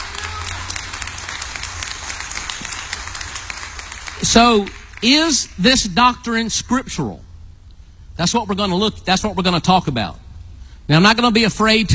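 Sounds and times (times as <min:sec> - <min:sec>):
audience hand clapping in praise: 0:00.0 - 0:05.8
speech: 0:04.2 - 0:07.2, 0:08.2 - 0:10.2, 0:10.9 - 0:11.9.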